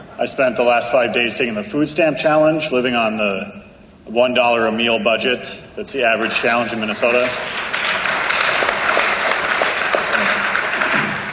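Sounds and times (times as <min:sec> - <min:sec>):
speech: 0:00.2 - 0:07.7
crowd applause: 0:06.2 - 0:11.3.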